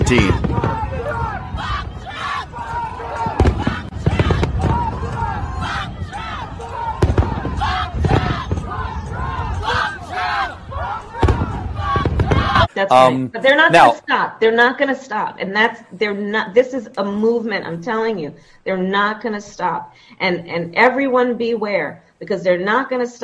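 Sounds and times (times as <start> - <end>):
crowd shouting at a protest: 0.0 - 13.9
speech: 0.1 - 0.8, 12.8 - 23.2.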